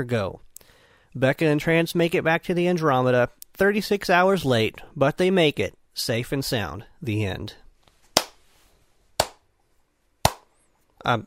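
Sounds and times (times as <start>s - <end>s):
speech: 0.0s - 0.5s, 1.1s - 7.6s, 11.0s - 11.2s
slow clap: 8.2s - 8.4s, 9.2s - 9.4s, 10.2s - 10.5s.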